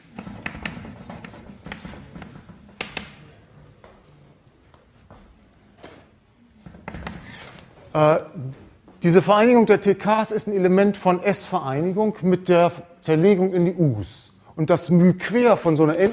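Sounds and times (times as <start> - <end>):
chalk or marker writing on a board during a German mathematics lecture: 0.2 - 2.4
speech: 8.0 - 16.1.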